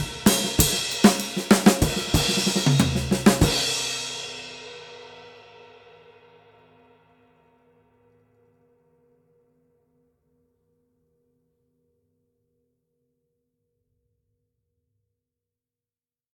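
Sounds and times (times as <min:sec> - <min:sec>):
vintage ride cymbal: 0:00.0 - 0:04.5.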